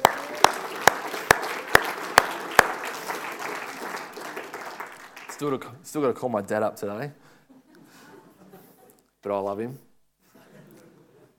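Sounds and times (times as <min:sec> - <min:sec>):
round of applause: 0:00.0 - 0:05.7
speech: 0:05.4 - 0:07.3, 0:09.2 - 0:09.9.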